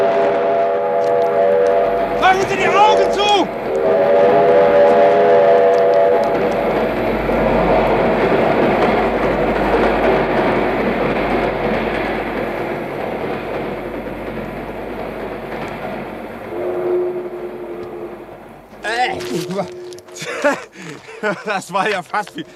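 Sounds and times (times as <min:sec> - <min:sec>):
express train passing by: 0:00.0 - 0:22.5
speech: 0:02.3 - 0:04.4, 0:21.4 - 0:22.5
laughter: 0:18.9 - 0:22.5.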